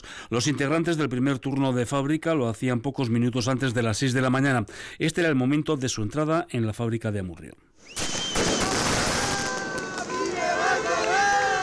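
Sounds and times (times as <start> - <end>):
speech: 0.3 - 8.1
applause from workers of other companies: 8.5 - 11.6.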